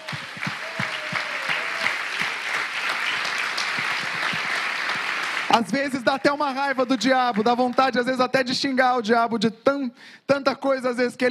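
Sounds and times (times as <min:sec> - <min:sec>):
audience applauding: 0:00.0 - 0:08.0
speech: 0:05.6 - 0:11.2.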